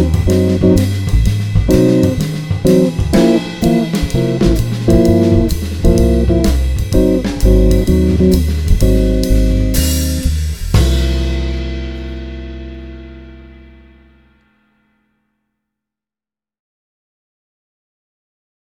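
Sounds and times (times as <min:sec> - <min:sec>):
musical vamp: 0:00.0 - 0:14.1.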